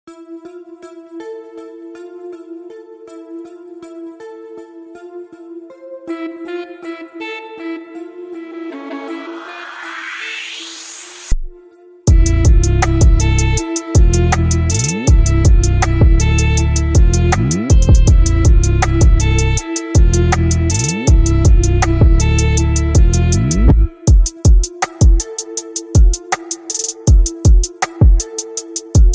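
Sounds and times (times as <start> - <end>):
drone beat: 12.1 - 29.1.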